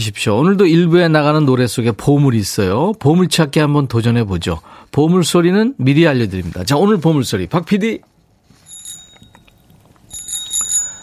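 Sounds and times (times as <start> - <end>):
speech: 0.0 - 8.1
bicycle bell ringing: 8.6 - 11.0.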